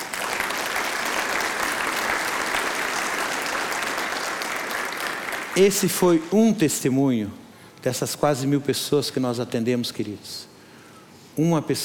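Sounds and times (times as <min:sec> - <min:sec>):
audience applause: 0:00.0 - 0:05.8
speech: 0:05.6 - 0:10.5, 0:11.4 - 0:11.8.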